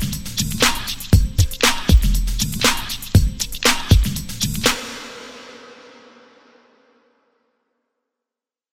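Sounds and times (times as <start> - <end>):
loop at 119 bpm: 0.0 - 5.1.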